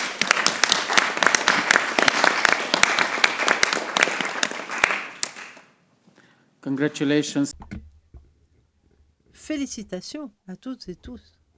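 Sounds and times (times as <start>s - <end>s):
crowd applauding by acclamation: 0.0s - 5.7s
speech: 6.6s - 7.7s, 9.5s - 11.4s.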